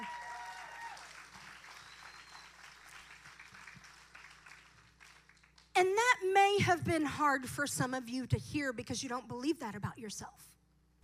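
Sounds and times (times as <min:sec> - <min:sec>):
audience applauding: 0:00.0 - 0:05.7
speech: 0:05.8 - 0:10.6.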